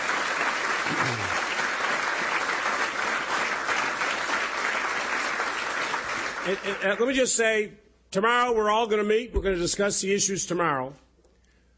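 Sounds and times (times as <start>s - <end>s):
applause: 0.0s - 7.2s
speech: 6.4s - 11.0s.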